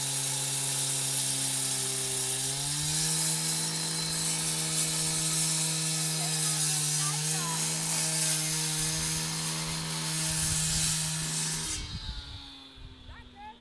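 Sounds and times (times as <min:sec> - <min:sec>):
cut-off saw cutting: 0:00.0 - 0:13.5.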